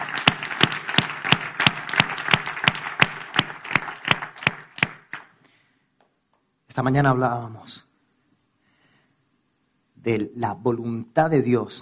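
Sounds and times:
audience applauding: 0.0s - 5.3s
speech: 6.8s - 7.8s, 10.0s - 11.8s.

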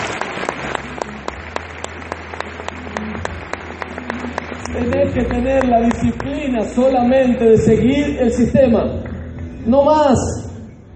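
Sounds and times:
audience applause: 0.0s - 6.4s
speech: 5.2s - 9.0s, 9.6s - 10.4s.

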